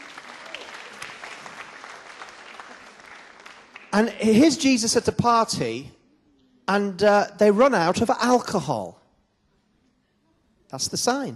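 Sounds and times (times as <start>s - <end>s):
audience applauding: 0.0s - 4.5s
speech: 4.0s - 6.0s, 6.7s - 9.0s, 10.7s - 11.3s.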